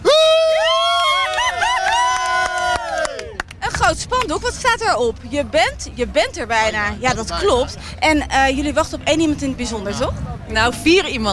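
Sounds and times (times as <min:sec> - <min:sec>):
spectators cheering: 0:00.0 - 0:04.2
sharp claps or bangs: 0:02.2 - 0:04.3
speech: 0:04.0 - 0:11.3.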